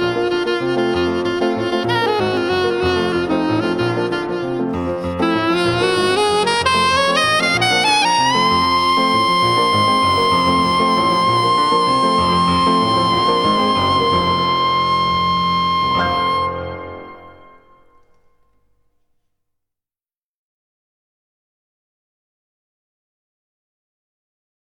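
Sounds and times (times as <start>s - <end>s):
improvisation: 0.0s - 18.3s.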